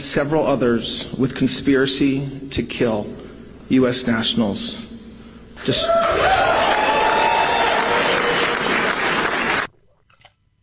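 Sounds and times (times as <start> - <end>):
speech: 0.0 - 4.9, 5.6 - 6.6
crowd cheering and applauding: 5.7 - 9.7.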